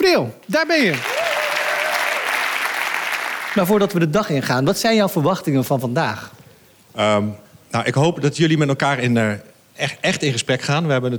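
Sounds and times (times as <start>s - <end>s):
speech: 0.0s - 1.1s, 3.6s - 6.4s, 7.0s - 11.1s
audience applause: 0.6s - 3.7s.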